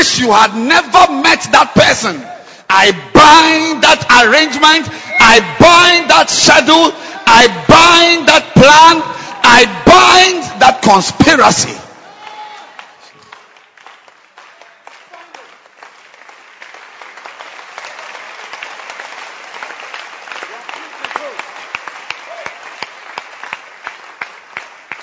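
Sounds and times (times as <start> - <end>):
speech: 0.0 - 11.8
audience clapping: 12.0 - 25.0.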